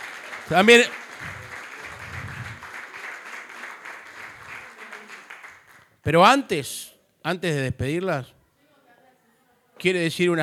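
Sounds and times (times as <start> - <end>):
audience applause: 0.0 - 5.9
speech: 0.5 - 1.3, 6.0 - 8.4, 9.8 - 10.4.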